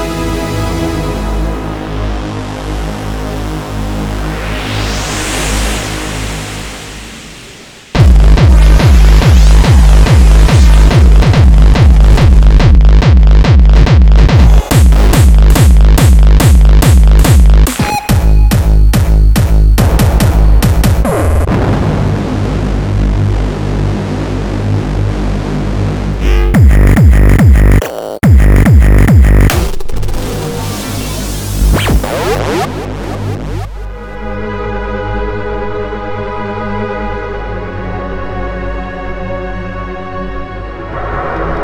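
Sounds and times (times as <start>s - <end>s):
hardcore music samples: 0.0s - 34.9s
hardstyle music loop: 8.0s - 21.5s, 26.1s - 33.9s.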